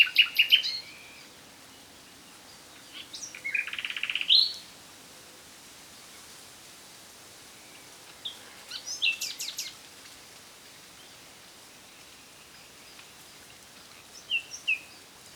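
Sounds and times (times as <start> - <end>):
Luscinia megarhynchos singing: 0.0 - 1.4, 2.8 - 4.7, 8.2 - 9.8, 14.2 - 15.0.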